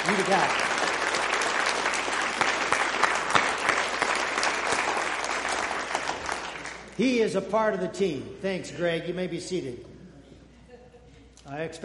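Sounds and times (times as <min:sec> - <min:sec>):
audience applause: 0:00.0 - 0:07.0
speech: 0:00.1 - 0:00.7, 0:07.0 - 0:09.9, 0:11.5 - 0:11.8.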